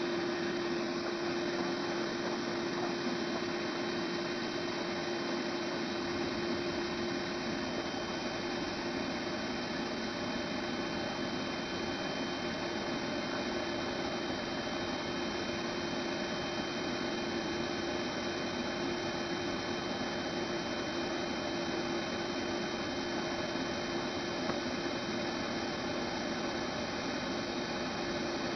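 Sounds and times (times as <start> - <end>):
low pitch shifted vacuum cleaner: 0.0 - 28.5.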